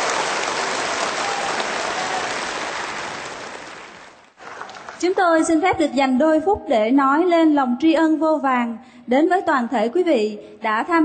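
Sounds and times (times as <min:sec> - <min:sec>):
audience clapping for performers at a book launch event: 0:00.0 - 0:05.4
speech: 0:05.0 - 0:11.0.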